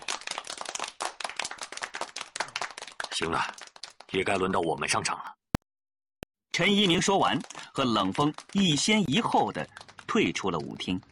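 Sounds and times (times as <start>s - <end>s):
enthusiastic applause after a dance: 0.0s - 4.4s, 6.7s - 11.1s
speech: 3.2s - 5.4s, 6.6s - 11.1s.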